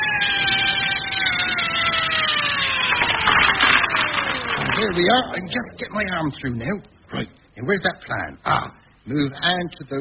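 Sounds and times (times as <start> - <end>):
electric drill running: 0.5 - 5.0
speech: 4.8 - 9.9.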